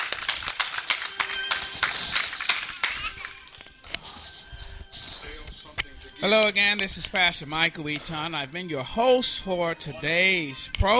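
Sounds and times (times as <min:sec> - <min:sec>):
audience hand clapping: 0:00.0 - 0:03.7
speech: 0:06.2 - 0:10.9.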